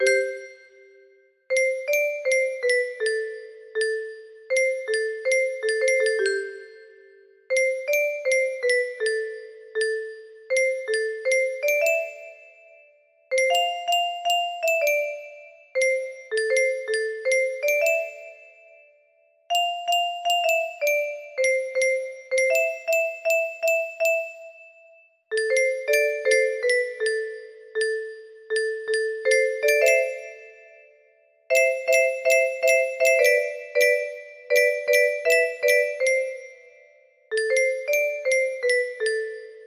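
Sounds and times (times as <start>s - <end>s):
music box melody: 0.0s - 39.6s.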